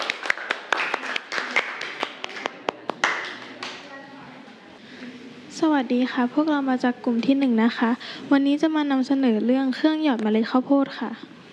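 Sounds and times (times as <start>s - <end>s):
classroom clapping: 0.0s - 3.9s
speech: 5.6s - 11.4s.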